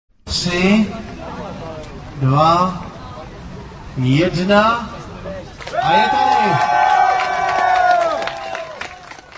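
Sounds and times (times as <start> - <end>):
speech: 0.3 - 1.1, 2.2 - 2.8, 4.0 - 4.9, 5.8 - 6.8
crowd cheering: 5.6 - 9.3.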